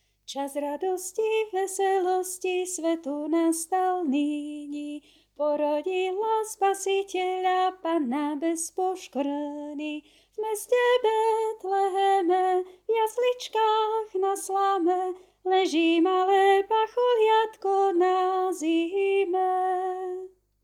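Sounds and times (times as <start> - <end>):
soprano voice: 0.3 - 20.4.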